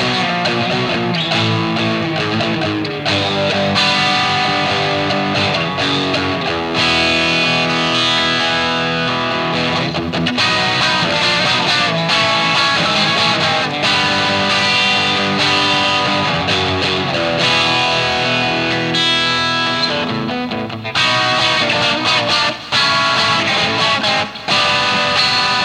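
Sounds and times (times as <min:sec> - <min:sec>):
guitar tone through a tube driver pedal: 0:00.0 - 0:25.6.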